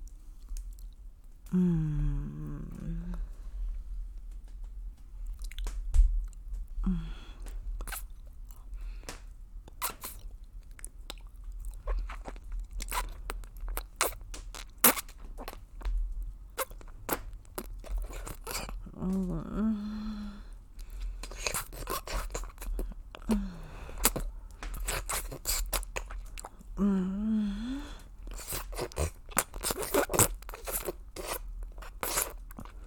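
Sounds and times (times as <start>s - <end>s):
low hummed vocal sound: 1.4s - 3.6s, 6.8s - 7.4s, 18.8s - 20.6s, 26.6s - 28.0s
chewing and biting food: 5.2s - 6.7s, 7.4s - 19.6s, 20.4s - 26.8s, 27.9s - 32.8s.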